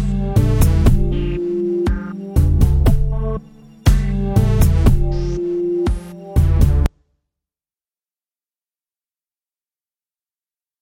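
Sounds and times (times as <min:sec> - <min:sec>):
F60 groove: 0:00.0 - 0:06.9.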